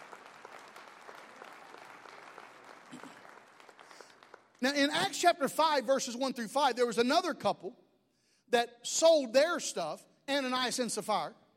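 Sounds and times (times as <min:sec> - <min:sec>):
audience clapping: 0:00.0 - 0:05.1
speech: 0:04.6 - 0:07.8, 0:08.5 - 0:11.4.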